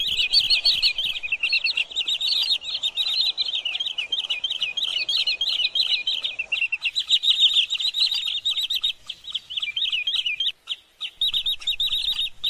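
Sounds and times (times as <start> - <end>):
green sandpiper calling: 0.0 - 12.4.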